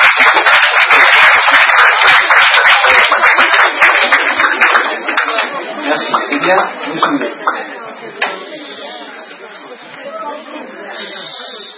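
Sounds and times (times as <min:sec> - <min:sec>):
crowd applause: 0:00.0 - 0:09.4.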